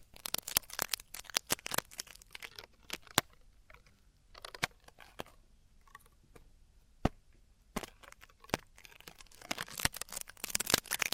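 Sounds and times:
traditional Chinese ear cleaning and earwax removal crackles: 0:00.0 - 0:03.4, 0:08.0 - 0:11.1.

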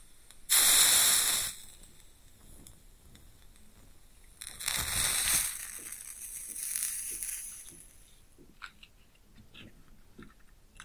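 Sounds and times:
fire crackling and sizzling: 0:00.0 - 0:08.2
match lighting: 0:00.3 - 0:08.1.

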